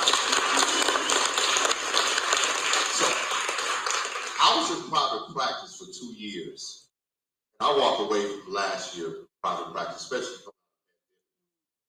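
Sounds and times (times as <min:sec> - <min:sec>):
applause: 0:00.0 - 0:04.9
speech: 0:04.9 - 0:06.8, 0:07.6 - 0:10.5.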